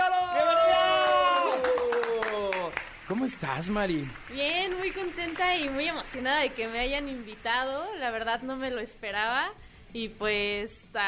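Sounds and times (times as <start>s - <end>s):
sustained cheering tone: 0.0s - 2.8s
applause welcoming a guest: 0.0s - 8.7s
speech: 3.1s - 11.0s.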